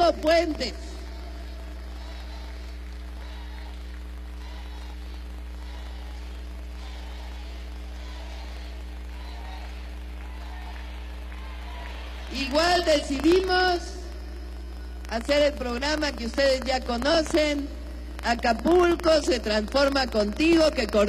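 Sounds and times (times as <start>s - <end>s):
low constant hum: 0.0s - 21.0s
speech: 0.1s - 0.9s, 12.5s - 14.0s, 15.1s - 21.0s
audience applause: 0.6s - 13.4s.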